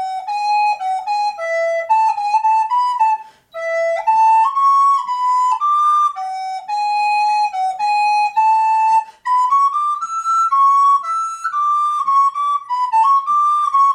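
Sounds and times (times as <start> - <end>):
flute playing a minuet: 0.0 - 13.9.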